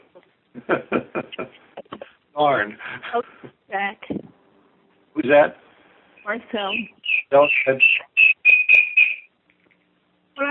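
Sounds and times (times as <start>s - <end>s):
laughter: 0.6s - 2.1s
speech: 0.7s - 1.7s, 2.4s - 4.0s, 5.2s - 5.6s, 6.3s - 8.0s
parrot-like whistling in the room: 6.2s - 9.3s.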